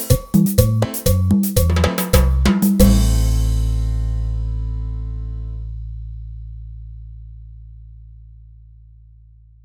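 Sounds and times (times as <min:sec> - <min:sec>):
cumbia music: 0:00.0 - 0:05.8.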